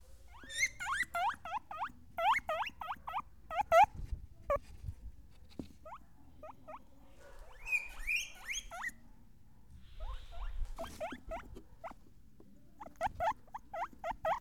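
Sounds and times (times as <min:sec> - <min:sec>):
guinea pig giving short rising squeaks: 0:00.3 - 0:04.6, 0:05.8 - 0:09.0, 0:10.0 - 0:12.1, 0:12.8 - 0:14.3.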